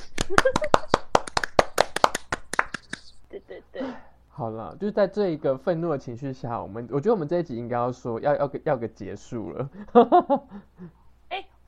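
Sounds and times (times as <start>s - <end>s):
hand clapping: 0.0s - 3.2s
speech: 0.3s - 0.9s, 3.3s - 11.0s.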